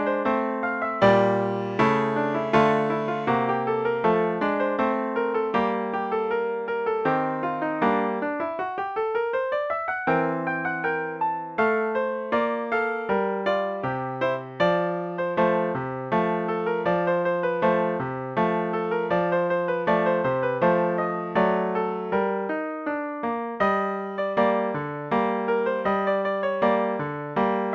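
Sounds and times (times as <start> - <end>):
polonaise piano solo: 0.0 - 27.7.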